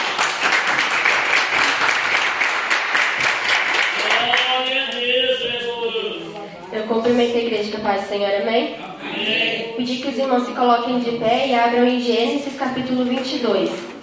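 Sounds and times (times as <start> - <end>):
crowd clapping hands: 0.0 - 5.7
speech: 6.9 - 13.9.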